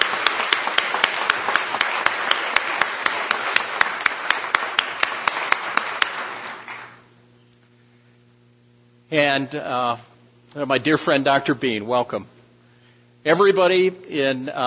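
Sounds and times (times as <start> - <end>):
audience rhythmic clapping welcoming guests: 0.0 - 7.1
speech: 9.1 - 12.4, 13.2 - 14.6.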